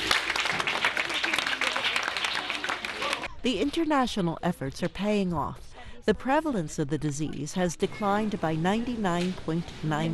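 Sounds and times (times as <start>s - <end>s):
audience clapping: 0.0s - 3.3s
speech: 3.4s - 10.1s.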